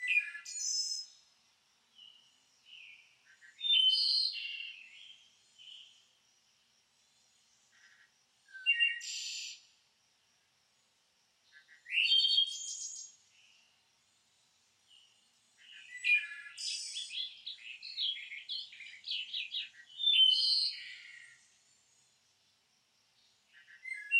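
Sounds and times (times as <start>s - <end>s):
morning birds singing: 0.0s - 1.2s, 1.9s - 6.1s, 7.5s - 9.6s, 11.5s - 13.7s, 14.9s - 21.9s, 23.2s - 24.1s.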